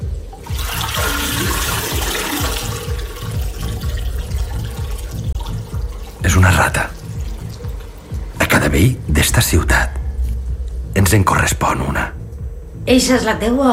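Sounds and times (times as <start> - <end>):
toilet flushing: 0.2 - 8.6
speech: 8.7 - 10.0, 11.0 - 12.2, 12.8 - 13.6.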